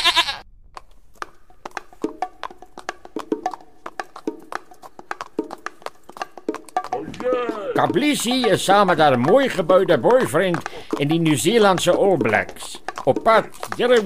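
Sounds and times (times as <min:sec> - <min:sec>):
small buck bleating: 0:00.0 - 0:00.4
speech: 0:07.8 - 0:14.0.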